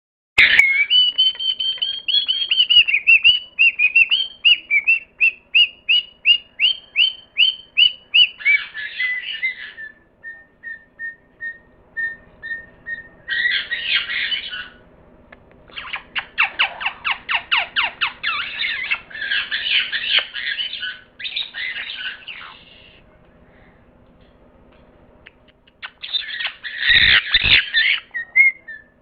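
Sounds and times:
parrot chirping and squawking: 0:00.4 - 0:10.0, 0:12.4 - 0:14.8, 0:15.7 - 0:23.0, 0:25.3 - 0:28.6.

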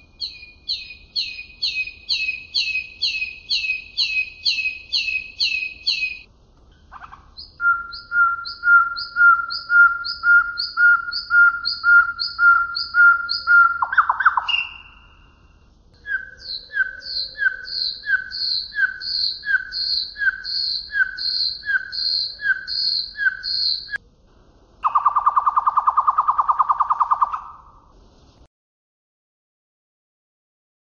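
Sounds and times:
Common nightingale song: 0:00.0 - 0:24.0, 0:24.8 - 0:27.8.

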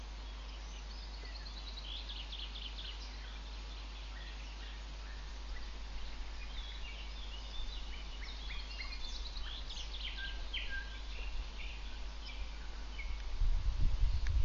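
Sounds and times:
nightingale song: 0:00.0 - 0:13.4.

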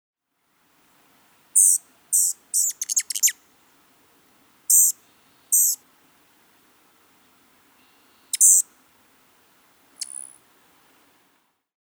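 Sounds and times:
rufous hummingbird calls: 0:01.6 - 0:03.4, 0:04.2 - 0:11.3.

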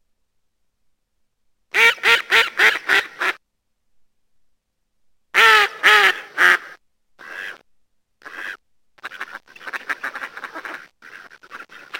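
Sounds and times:
mallard quacking: 0:01.7 - 0:03.4, 0:05.4 - 0:07.6, 0:08.2 - 0:11.9.

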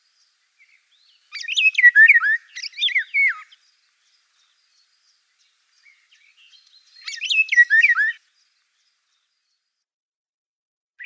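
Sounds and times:
Eurasian golden oriole whistling: 0:01.3 - 0:03.6, 0:07.0 - 0:08.2.

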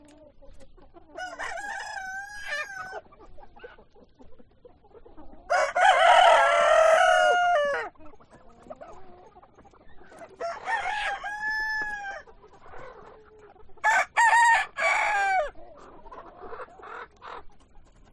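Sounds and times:
chicken clucking: 0:00.0 - 0:18.1
rooster crowing: 0:01.2 - 0:03.0, 0:05.5 - 0:07.9, 0:10.4 - 0:12.2, 0:13.8 - 0:15.5.

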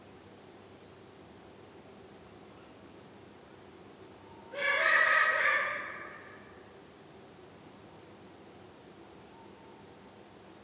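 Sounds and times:
Eurasian eagle-owl wailing: 0:04.2 - 0:06.7.

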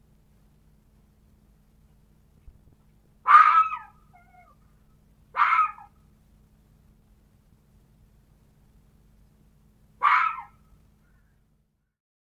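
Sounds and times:
red fox barking: 0:03.2 - 0:04.6, 0:05.3 - 0:06.0, 0:10.0 - 0:10.6.

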